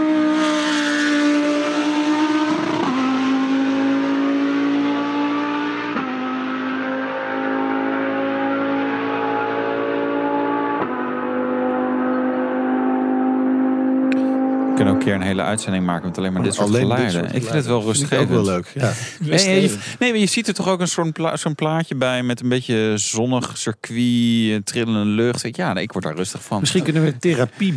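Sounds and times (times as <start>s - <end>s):
Lamborghini Huracan GT3 race car engine: 0.0s - 20.0s
speech: 15.0s - 27.7s
laughter: 16.2s - 20.0s, 26.2s - 27.7s.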